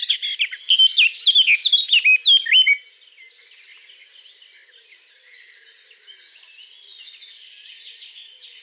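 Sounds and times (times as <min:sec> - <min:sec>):
Eurasian blackcap singing a varied warble: 0:00.2 - 0:02.8.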